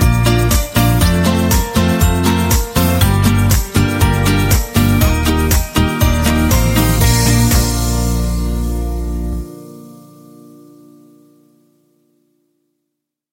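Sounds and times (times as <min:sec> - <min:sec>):
jingle: 0:00.0 - 0:10.5.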